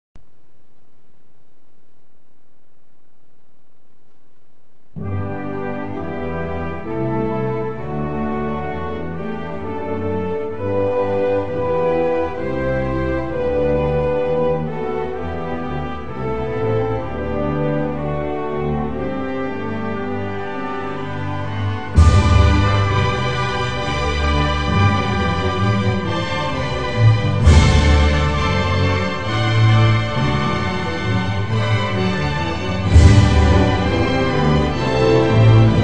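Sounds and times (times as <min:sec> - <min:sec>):
national anthem backing track: 0:03.8 - 0:35.8.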